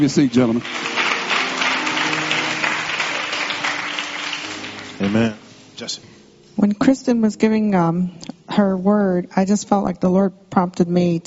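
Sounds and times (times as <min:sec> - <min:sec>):
speech: 0:00.0 - 0:01.0, 0:05.0 - 0:11.2
audience applauding: 0:00.0 - 0:05.6.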